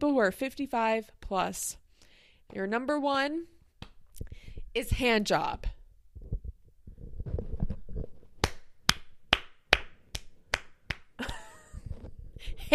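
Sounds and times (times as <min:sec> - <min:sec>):
speech: 0:00.0 - 0:01.8, 0:02.5 - 0:03.6, 0:04.7 - 0:05.8, 0:12.4 - 0:12.7
hand clapping: 0:08.4 - 0:11.2.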